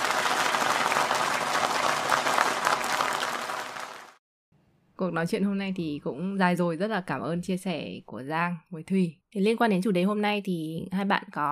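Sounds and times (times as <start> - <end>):
audience applause: 0.0 - 4.2
speech: 5.0 - 11.4.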